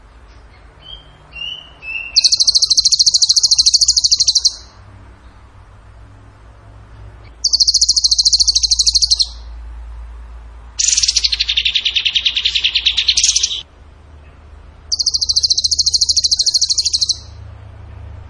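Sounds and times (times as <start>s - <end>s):
bird trills: 0.3s - 4.8s, 7.2s - 9.6s, 10.8s - 17.4s.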